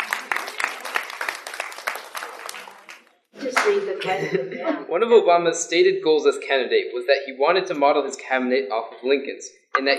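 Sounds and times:
audience clapping: 0.0 - 3.8
speech: 3.7 - 9.9.

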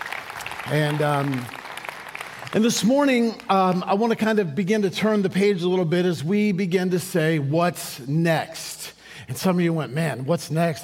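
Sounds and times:
audience clapping: 0.0 - 4.4
speech: 0.6 - 1.6, 2.5 - 10.8.

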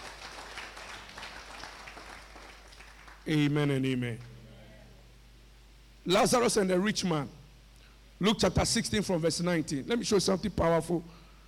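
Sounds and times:
audience clapping: 0.0 - 3.5
speech: 3.3 - 4.3, 6.0 - 7.4, 8.2 - 11.2.

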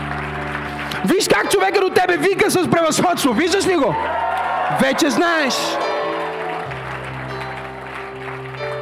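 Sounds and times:
hands clapping: 0.0 - 2.6, 4.3 - 8.8
speech: 1.0 - 5.9.

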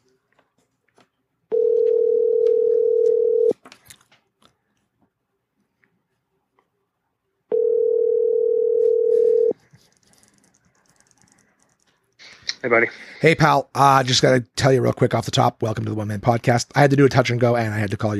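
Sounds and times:
telephone ringback tones while placing a call: 1.5 - 3.5, 7.5 - 9.6
speech: 12.7 - 18.1.

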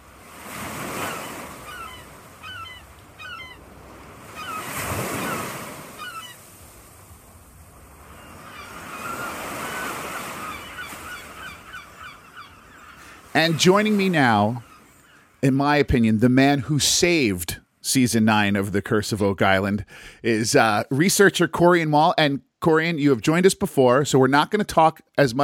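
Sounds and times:
ocean surf: 0.0 - 16.8
seagulls calling: 0.4 - 6.9, 7.8 - 15.5
speech: 13.4 - 14.7, 15.4 - 25.4.

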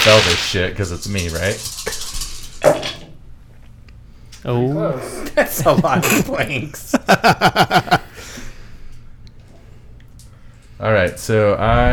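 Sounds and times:
speech: 0.0 - 2.0, 4.4 - 8.0, 10.8 - 11.9
many dice rolled in dice tray: 0.0 - 2.6
laughter: 5.3 - 8.2.

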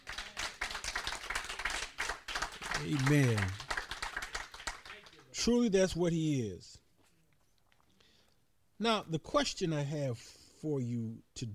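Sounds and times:
crowd clapping hands: 0.0 - 5.4
speech: 2.8 - 3.6, 5.4 - 6.8, 8.8 - 11.5.

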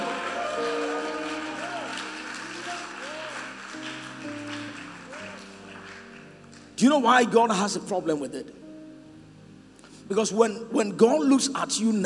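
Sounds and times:
crowd clapping and shouting praise: 0.0 - 6.8
sustained keyboard chords: 0.0 - 12.0
speech: 6.8 - 8.6, 10.1 - 12.0.

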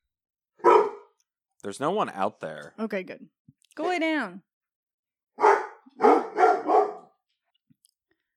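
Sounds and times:
dog barking: 0.6 - 1.2, 5.4 - 7.2
speech: 1.6 - 4.5.

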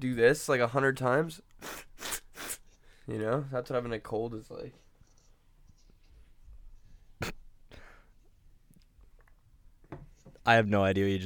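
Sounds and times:
speech: 0.0 - 2.1, 3.1 - 4.8, 10.4 - 11.2
person sniffling: 1.6 - 3.0, 7.2 - 8.2.

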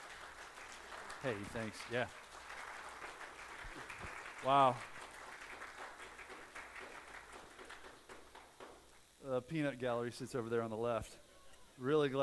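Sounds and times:
audience applauding: 0.0 - 8.9
speech: 1.2 - 2.2, 4.4 - 5.0, 9.2 - 11.2, 11.8 - 12.2.

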